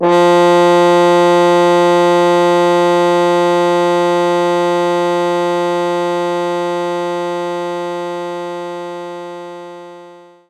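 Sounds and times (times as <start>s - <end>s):
French horn note F2: 0.0s - 10.4s.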